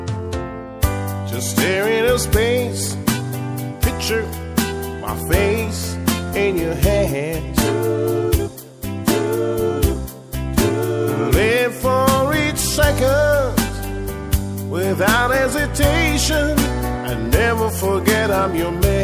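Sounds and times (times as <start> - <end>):
steel drum band playing blues: 0.1 - 19.0.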